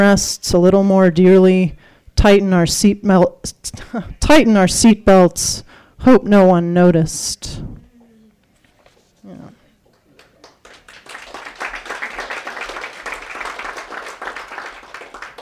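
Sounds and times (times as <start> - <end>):
speech: 0.0 - 7.7
audience applause between poems: 10.2 - 15.4.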